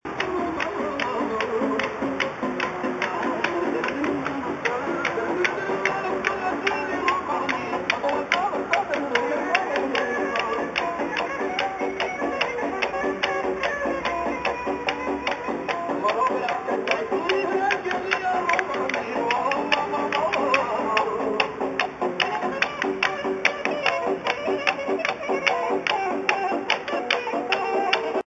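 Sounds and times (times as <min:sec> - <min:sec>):
street entertainment: 0:00.1 - 0:28.2.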